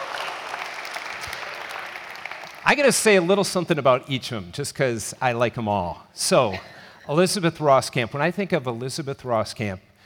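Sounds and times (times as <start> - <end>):
audience applause for a group member being introduced: 0.0 - 3.1
speech: 2.7 - 9.9.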